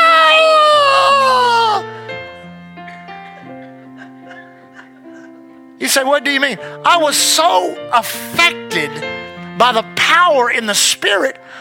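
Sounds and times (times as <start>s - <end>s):
man screaming: 0.0s - 1.9s
laughter: 3.2s - 5.6s
speech: 5.8s - 11.6s.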